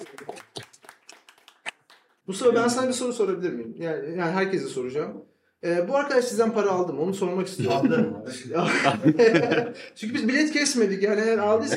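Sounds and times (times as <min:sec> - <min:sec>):
audience clapping: 0:00.0 - 0:02.2
speech: 0:02.3 - 0:11.7
laughter: 0:07.6 - 0:09.9, 0:11.4 - 0:11.7.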